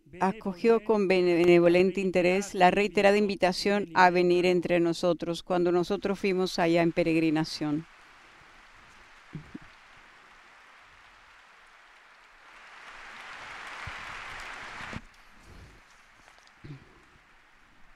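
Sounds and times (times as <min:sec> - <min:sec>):
speech: 0:00.1 - 0:07.9
warm audience applause: 0:07.8 - 0:17.9.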